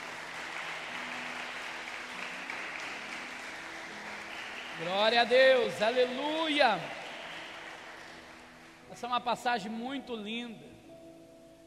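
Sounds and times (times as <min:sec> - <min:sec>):
audience applause: 0:00.0 - 0:09.1
speech: 0:04.8 - 0:07.0, 0:09.0 - 0:10.7.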